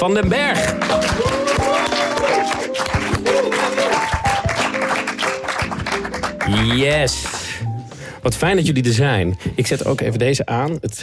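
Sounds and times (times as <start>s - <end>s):
speech: 0.0s - 3.8s, 6.5s - 7.4s, 8.2s - 11.0s
audience applause: 0.7s - 7.0s
bright tuneful music jingle: 0.7s - 9.2s.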